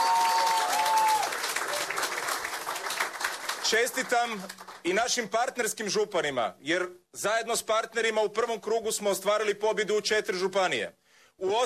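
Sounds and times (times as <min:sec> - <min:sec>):
crowd applause at a Croatian party gathering: 0:00.0 - 0:04.8
speech: 0:03.7 - 0:11.6.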